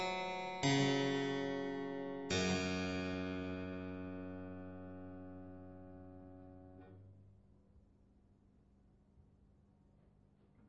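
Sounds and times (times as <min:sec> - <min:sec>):
classical piece for two-manual harpsichord: 0:00.0 - 0:06.1.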